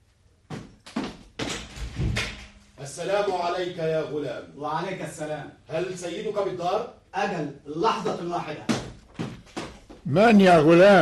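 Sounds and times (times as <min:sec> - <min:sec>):
door opening in a historical drama scene: 0:01.4 - 0:02.6
speech: 0:02.8 - 0:09.3, 0:10.1 - 0:10.9.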